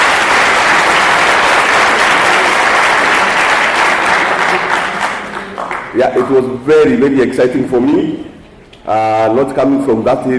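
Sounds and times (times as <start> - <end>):
audience applause: 0.0 - 6.0
speech: 6.0 - 10.3.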